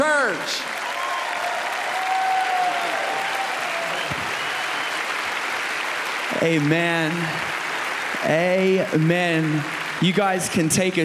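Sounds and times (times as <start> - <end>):
large indoor church crowd applauding: 0.0 - 11.0
cheers and whoops: 0.7 - 5.9
speech: 6.4 - 7.5, 8.2 - 11.0.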